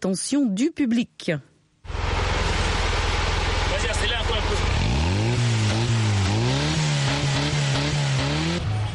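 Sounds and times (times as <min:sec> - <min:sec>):
speech: 0:00.0 - 0:01.5, 0:04.0 - 0:05.0
road noise on city streets: 0:01.8 - 0:08.9
engine of small blue pickup truck built from recycled parts revving: 0:01.9 - 0:08.9.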